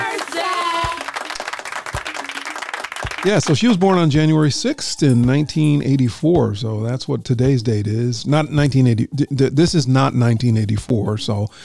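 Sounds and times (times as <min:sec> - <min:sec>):
round of applause: 0:00.0 - 0:03.9
speech: 0:03.2 - 0:11.6.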